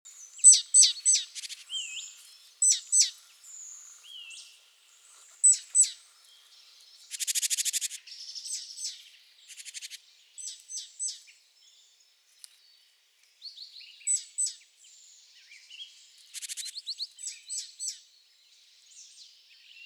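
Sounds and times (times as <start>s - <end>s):
great tit chirps: 0.2s - 4.5s, 5.4s - 11.1s.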